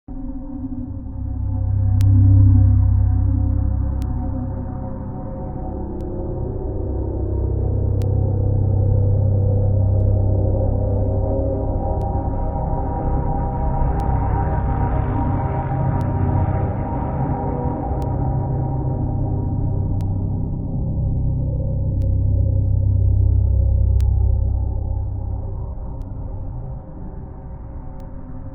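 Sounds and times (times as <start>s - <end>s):
scary ambient loop: 0.1s - 28.5s.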